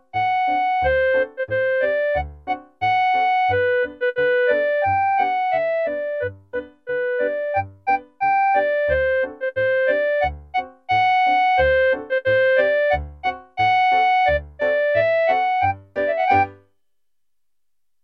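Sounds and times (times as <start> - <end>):
clarinet playing a polka: 0.1 - 16.6.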